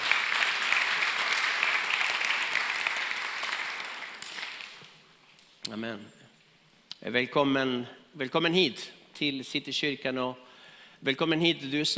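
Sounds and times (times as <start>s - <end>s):
warm applause from audience: 0.0s - 5.0s
speech: 5.7s - 6.2s, 7.0s - 11.9s.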